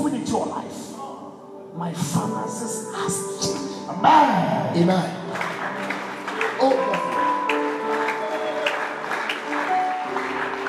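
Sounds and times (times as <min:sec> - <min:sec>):
speech: 0:01.8 - 0:05.6
audience clapping weakly: 0:05.2 - 0:10.6.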